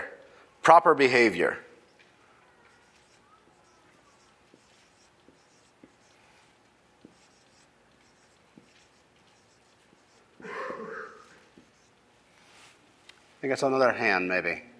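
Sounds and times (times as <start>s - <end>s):
speech: 0.7s - 1.7s, 13.5s - 14.7s
pen scratching handwriting: 2.6s - 12.8s.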